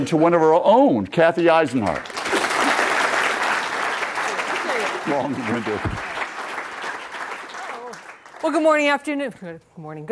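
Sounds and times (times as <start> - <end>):
speech: 0.0 - 2.2, 5.0 - 6.1, 8.4 - 10.1
audience applause welcoming a speaker: 1.7 - 8.6.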